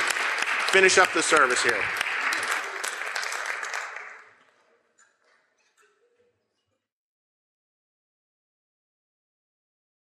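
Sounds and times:
warm round of applause: 0:00.0 - 0:04.7
speech: 0:00.7 - 0:02.0.

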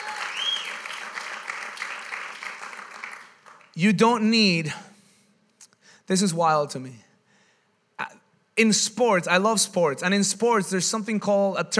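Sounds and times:
audience applause: 0:00.0 - 0:03.8
speech: 0:03.8 - 0:04.9, 0:06.1 - 0:07.1, 0:08.6 - 0:11.7.

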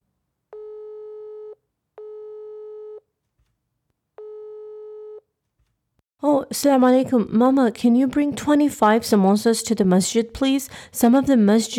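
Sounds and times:
telephone call tone while calling: 0:00.6 - 0:03.0
speech: 0:06.4 - 0:11.7.

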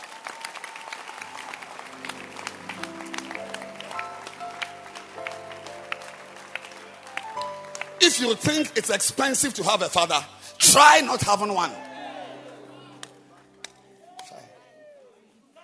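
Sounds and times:
audience clapping hands: 0:00.0 - 0:09.0, 0:13.0 - 0:14.5
speech: 0:08.1 - 0:11.8.

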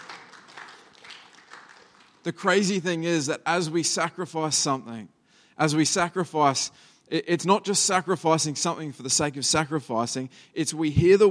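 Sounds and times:
hand clapping: 0:00.0 - 0:02.3
speech: 0:02.2 - 0:11.2.

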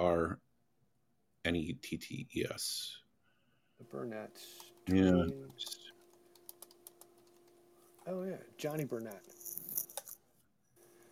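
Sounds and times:
speech: 0:00.0 - 0:00.4, 0:01.4 - 0:03.0, 0:03.8 - 0:05.9, 0:08.0 - 0:09.4
typing on a computer keyboard: 0:04.6 - 0:08.1.

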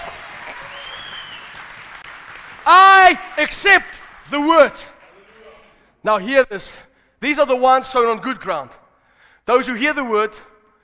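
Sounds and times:
faint cheers: 0:00.0 - 0:01.6
crowd clapping in praise: 0:00.0 - 0:05.6
speech: 0:02.6 - 0:04.9, 0:06.0 - 0:08.8, 0:09.5 - 0:10.5.

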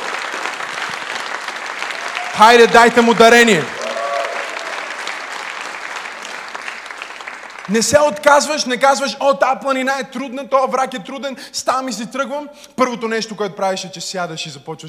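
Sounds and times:
audience applauding loudly: 0:00.0 - 0:08.2
speech: 0:02.4 - 0:03.8, 0:07.7 - 0:14.8.

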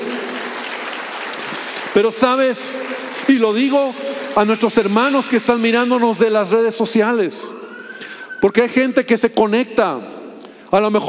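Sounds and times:
audience applause: 0:00.0 - 0:06.6
speech: 0:02.0 - 0:07.6, 0:08.4 - 0:11.0.

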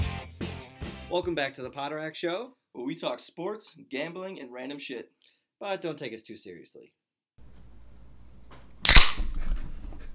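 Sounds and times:
speech: 0:01.1 - 0:07.0
beer can cracking open: 0:07.4 - 0:10.1.

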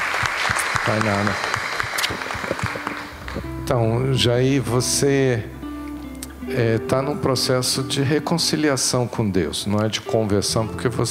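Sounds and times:
audience applause: 0:00.0 - 0:03.5
speech: 0:00.8 - 0:01.5, 0:03.4 - 0:05.6, 0:06.5 - 0:11.0.

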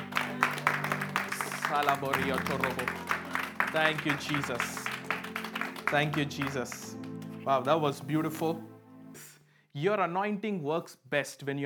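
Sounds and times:
audience clapping: 0:00.0 - 0:08.4
speech: 0:01.7 - 0:03.1, 0:03.7 - 0:04.8, 0:05.9 - 0:08.7, 0:09.8 - 0:11.6.

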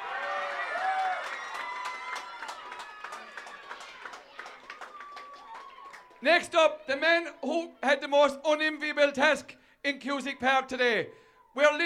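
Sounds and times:
crowd cheering and applauding: 0:00.0 - 0:07.0
speech: 0:06.2 - 0:11.8.

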